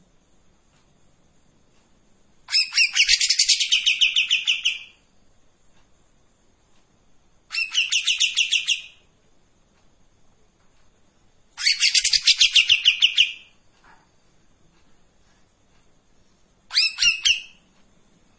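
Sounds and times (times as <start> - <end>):
Streak-eared bulbul buzzy chattering song: 2.5 - 5.0, 7.4 - 9.1, 11.5 - 13.6, 16.7 - 17.7.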